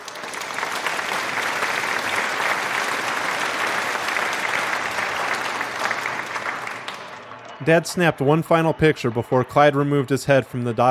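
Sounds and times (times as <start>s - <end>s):
canned applause over a PA system: 0.0s - 10.8s
speech: 7.6s - 10.8s.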